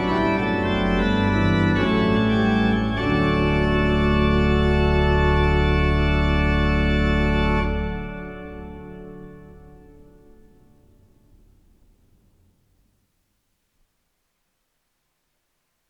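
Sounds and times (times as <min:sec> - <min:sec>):
organ playing chorale preludes: 0:00.0 - 0:11.4.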